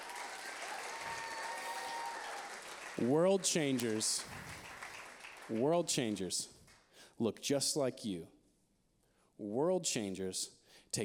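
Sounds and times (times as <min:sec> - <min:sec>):
audience applause: 0:00.0 - 0:05.7
speech: 0:03.0 - 0:04.6, 0:05.5 - 0:06.6, 0:07.2 - 0:08.4, 0:09.4 - 0:11.0.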